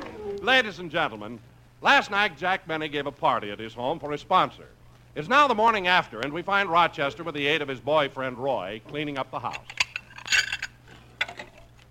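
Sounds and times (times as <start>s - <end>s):
speech: 0.4s - 9.8s
dishes clattering as they are stacked and cleared: 9.6s - 11.7s.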